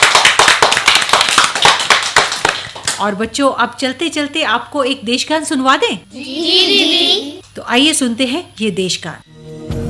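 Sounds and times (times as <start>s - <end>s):
audience applause: 0.0s - 2.8s
speech: 3.0s - 9.4s.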